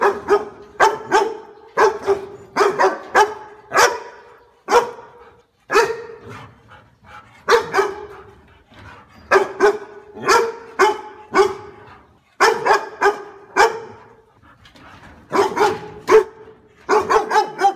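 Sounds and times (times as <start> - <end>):
dog barking: 0.0 - 6.2, 7.5 - 8.2, 9.3 - 11.8, 12.4 - 14.2, 15.3 - 17.7.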